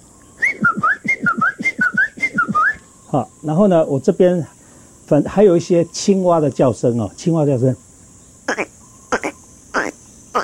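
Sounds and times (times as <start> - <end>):
person whistling an imitation of a Chinese bamboo partridge call: 0.4 - 2.9
speech: 3.1 - 7.8.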